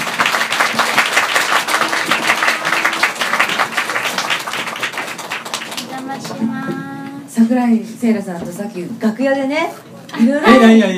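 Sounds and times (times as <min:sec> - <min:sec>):
audience applause welcoming guest: 0:00.0 - 0:06.3
speech: 0:07.5 - 0:10.9.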